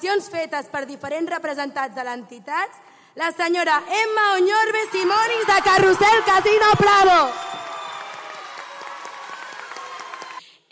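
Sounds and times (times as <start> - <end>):
speech: 0.0 - 7.6
audience applause: 5.0 - 10.4.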